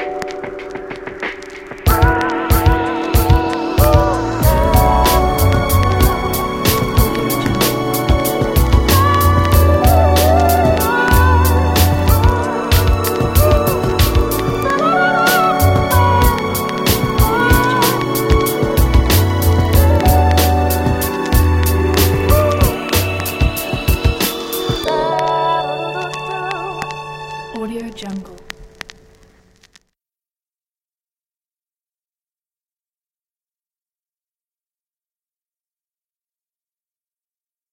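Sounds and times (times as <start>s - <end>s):
hip hop beat: 0.0s - 27.0s.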